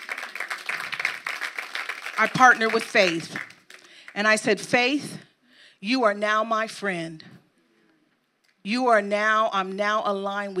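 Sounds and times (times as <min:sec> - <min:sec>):
audience clapping: 0:00.0 - 0:04.3
speech: 0:02.2 - 0:03.5, 0:04.2 - 0:07.4, 0:08.6 - 0:10.5.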